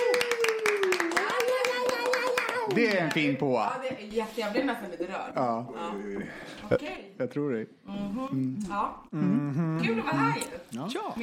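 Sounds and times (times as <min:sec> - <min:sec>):
audience applause for a guest on a Swedish show: 0:00.0 - 0:03.5
speech: 0:02.7 - 0:11.2.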